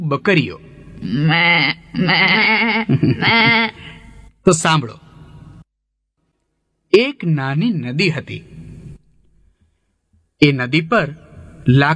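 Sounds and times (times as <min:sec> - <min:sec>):
speech: 0:00.1 - 0:05.0, 0:06.9 - 0:08.6, 0:10.4 - 0:11.9
laughter: 0:00.2 - 0:04.3
goat bleating: 0:00.9 - 0:04.1.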